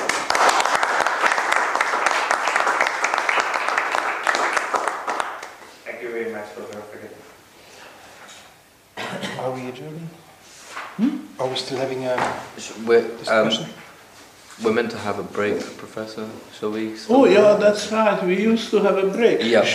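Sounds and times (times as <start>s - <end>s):
lecture audience applauding a visiting professor: 0.0s - 5.7s
speech: 11.5s - 13.8s, 14.6s - 19.7s.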